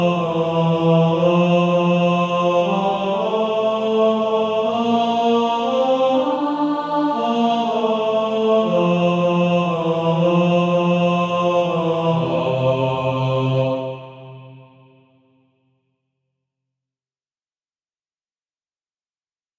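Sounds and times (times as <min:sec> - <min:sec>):
male choir singing, second tenor part: 0:00.0 - 0:15.2.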